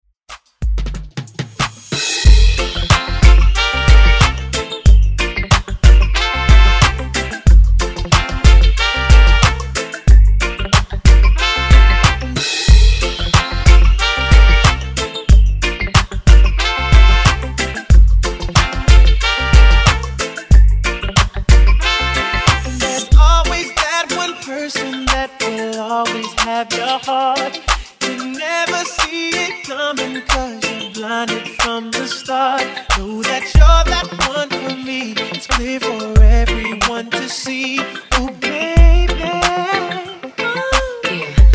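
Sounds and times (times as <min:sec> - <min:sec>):
reggae music: 0:00.3 - 0:41.5.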